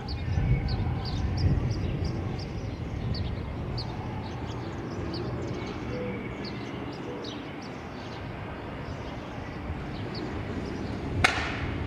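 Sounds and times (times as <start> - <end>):
city traffic rumble from a Brooklyn roof: 0.0 - 11.8
sharp knock: 11.2 - 11.7.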